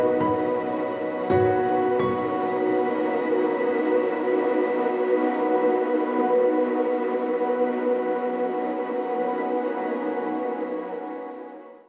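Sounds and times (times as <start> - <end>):
ambient synth pads: 0.0 - 11.7.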